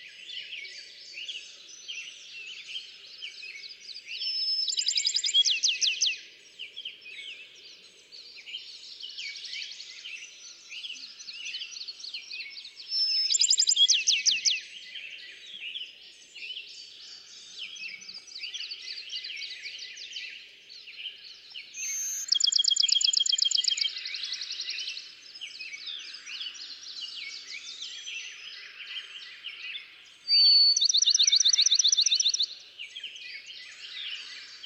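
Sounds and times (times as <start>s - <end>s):
Bachman's sparrow song: 0.0s - 34.6s.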